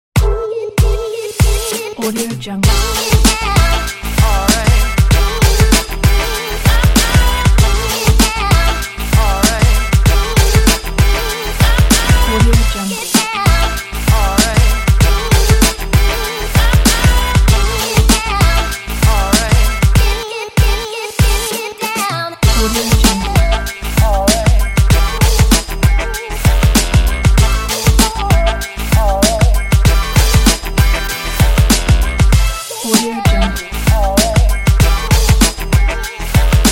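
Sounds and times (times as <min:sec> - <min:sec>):
hip hop music: 0:00.2 - 0:36.6.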